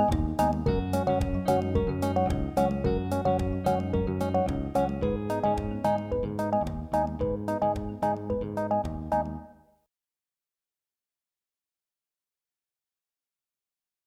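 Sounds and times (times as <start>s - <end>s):
karaoke backing track: 0.0s - 9.4s.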